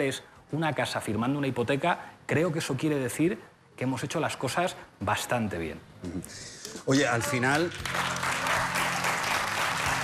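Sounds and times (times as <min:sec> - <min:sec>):
speech: 0:00.0 - 0:08.3
audience applause: 0:07.4 - 0:10.0.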